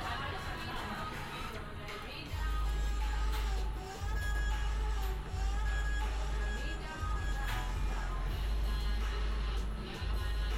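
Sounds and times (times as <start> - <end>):
faint voices in Amsterdam: 0.0 - 8.4
constant murmur: 0.0 - 10.5.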